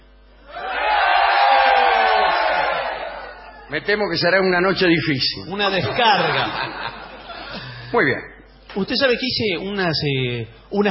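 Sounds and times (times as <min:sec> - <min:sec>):
crowd shouting together: 0:00.5 - 0:03.7
speech: 0:03.7 - 0:10.8
laughter: 0:05.6 - 0:07.9.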